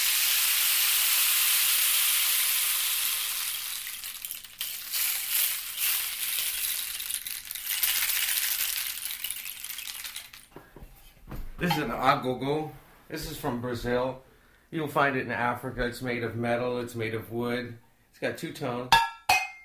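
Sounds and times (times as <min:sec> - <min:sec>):
hundreds of BB-like pellets cascading off toothpick-like protrusions in a canister: 0:00.0 - 0:10.5
speech: 0:11.6 - 0:19.0.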